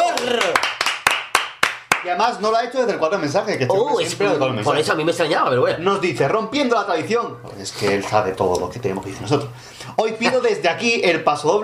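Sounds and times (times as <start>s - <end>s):
applause, hands clapping: 0.0s - 2.2s
speech: 2.0s - 11.6s.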